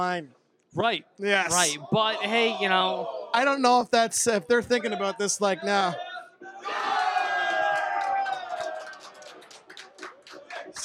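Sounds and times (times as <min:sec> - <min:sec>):
speech: 0:00.0 - 0:06.8
crowd cheering: 0:01.5 - 0:03.6, 0:05.7 - 0:10.8.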